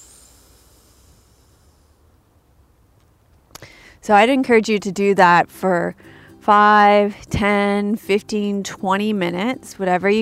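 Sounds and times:
exhaling through the left nostril during alternate nostril breathing: 0.0 - 2.2
speech: 4.0 - 10.2.

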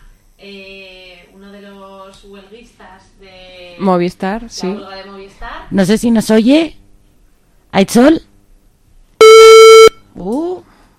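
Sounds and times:
speech: 0.4 - 0.9, 2.1 - 6.8, 7.7 - 8.3
loud buzzy electronic button beep: 9.2 - 10.0.

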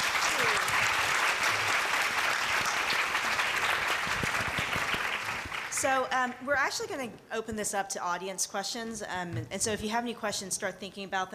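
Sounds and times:
round of applause: 0.0 - 5.9
speech: 5.8 - 11.3.

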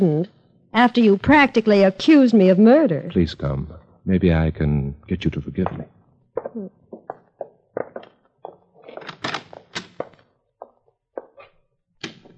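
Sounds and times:
speech: 0.0 - 6.8
door being locked: 9.0 - 10.0.

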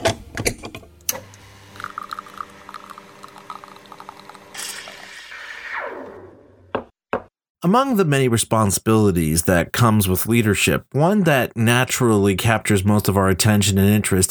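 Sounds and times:
espresso machine brewing: 1.0 - 5.7
speech: 7.7 - 14.2.

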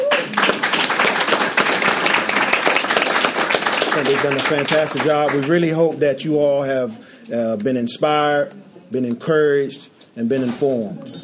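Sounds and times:
crowd applauding: 0.0 - 5.8
speech: 4.0 - 11.2.

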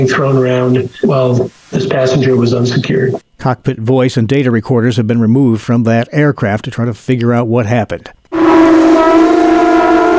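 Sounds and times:
speech: 0.0 - 9.4
conch shell blowing at Florida's annual conch shell blowing contest: 8.3 - 10.1.

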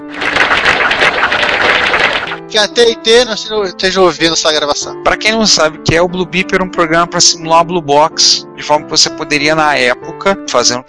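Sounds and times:
applause: 0.0 - 2.5
speech: 2.6 - 10.8.

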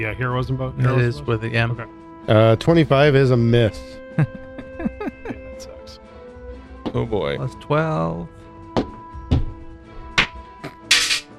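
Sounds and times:
speech: 0.0 - 4.4, 6.9 - 8.4
laughter: 0.8 - 1.7, 3.5 - 5.9
die bouncing off wall and floor: 8.7 - 11.3.

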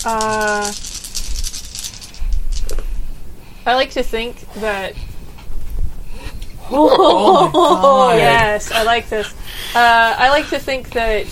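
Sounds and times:
speech: 0.0 - 0.9, 3.7 - 5.0, 6.7 - 11.3
dice rolled: 0.0 - 2.8
laughter: 6.6 - 11.0.

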